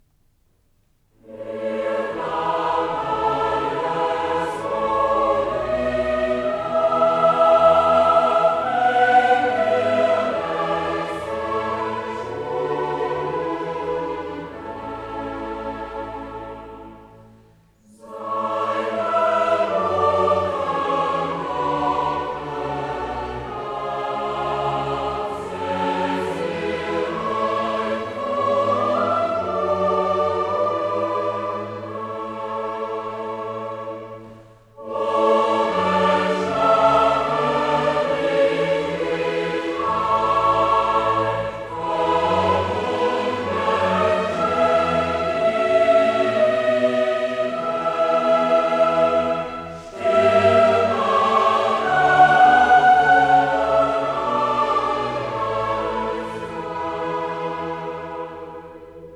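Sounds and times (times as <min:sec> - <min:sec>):
chorale: 0:00.0 - 0:59.1.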